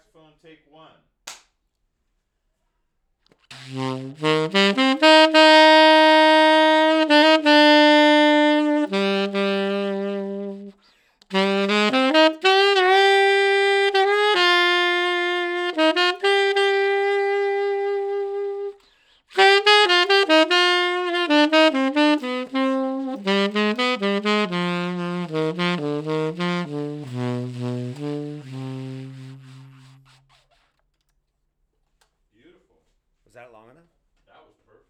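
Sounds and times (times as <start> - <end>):
saxophone: 3.5 - 30.6.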